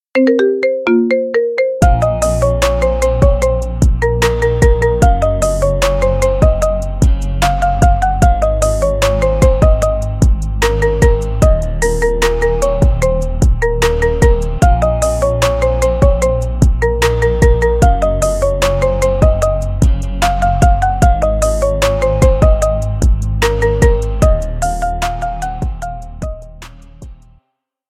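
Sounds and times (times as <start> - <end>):
marimba remix: 0.1 - 27.1.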